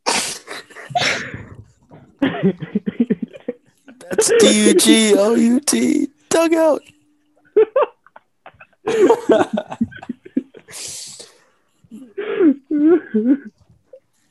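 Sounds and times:
stifled sneeze: 0:00.0 - 0:01.6
laughter: 0:02.2 - 0:05.3, 0:07.5 - 0:10.7
speech: 0:02.4 - 0:03.0, 0:04.2 - 0:07.0, 0:08.9 - 0:09.8, 0:13.2 - 0:13.6.

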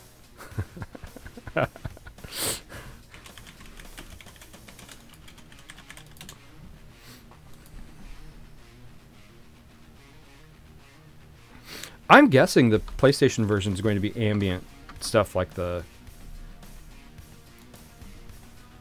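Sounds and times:
laughter: 0:00.4 - 0:03.3
speech: 0:01.6 - 0:01.8, 0:12.1 - 0:15.9
computer keyboard keys clicking as a search is typed into the YouTube search bar: 0:03.0 - 0:06.4.

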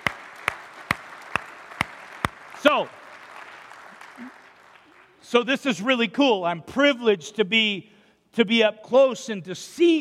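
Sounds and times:
audience hand clapping: 0:00.0 - 0:05.4
speech: 0:02.6 - 0:03.0, 0:04.2 - 0:04.4, 0:05.2 - 0:09.9.

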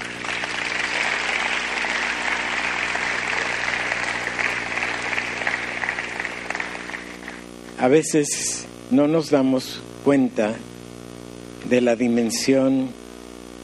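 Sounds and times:
audience applause: 0:00.0 - 0:07.4
speech: 0:07.8 - 0:10.7, 0:11.7 - 0:13.0.

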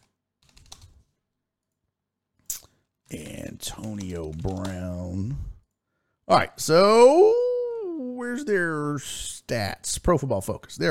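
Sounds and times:
typing on a computer keyboard while looking up football players' names: 0:00.0 - 0:01.0, 0:03.2 - 0:04.9
speech: 0:03.1 - 0:05.5, 0:06.3 - 0:07.4, 0:08.3 - 0:10.8.

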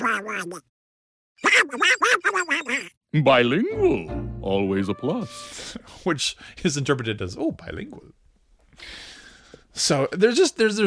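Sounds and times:
voice quacking like a duck in nasal buzzy calls: 0:00.0 - 0:00.7, 0:01.4 - 0:03.0
speech: 0:00.1 - 0:00.8, 0:01.4 - 0:08.2, 0:09.8 - 0:10.8.

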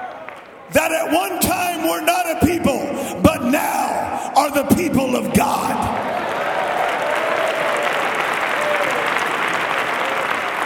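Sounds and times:
speech: 0:00.7 - 0:03.8, 0:04.4 - 0:06.0
audience clapping hands: 0:05.4 - 0:10.6.

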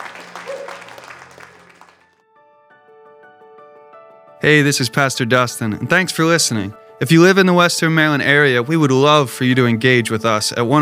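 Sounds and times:
audience applause and cheering: 0:00.0 - 0:02.2
speech: 0:04.4 - 0:10.8.

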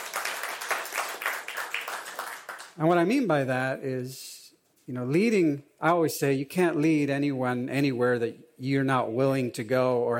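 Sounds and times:
congregation clapping for their worship leader: 0:00.0 - 0:02.8
speech: 0:02.8 - 0:04.3, 0:04.9 - 0:10.1.

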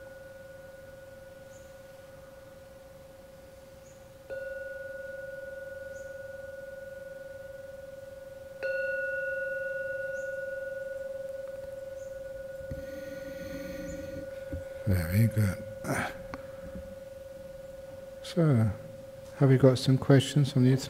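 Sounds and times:
gong ringing: 0:08.6 - 0:20.7
speech: 0:14.9 - 0:16.2, 0:18.3 - 0:18.8, 0:19.4 - 0:20.8.

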